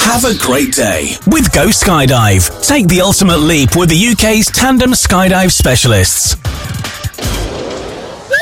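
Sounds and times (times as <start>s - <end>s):
speech: 0.2s - 7.4s
crash and clatter: 6.8s - 8.3s.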